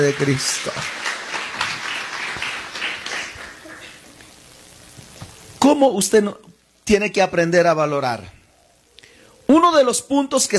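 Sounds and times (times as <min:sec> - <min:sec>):
speech: 0:00.0 - 0:01.0, 0:05.7 - 0:08.4, 0:09.5 - 0:10.5
audience applauding: 0:00.0 - 0:04.2.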